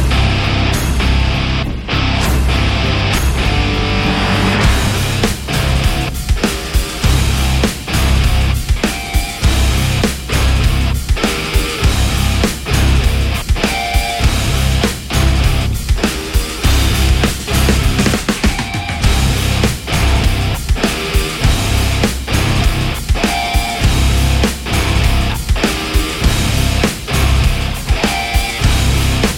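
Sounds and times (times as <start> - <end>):
drums: 0.0 - 29.3
guitar: 0.0 - 29.3.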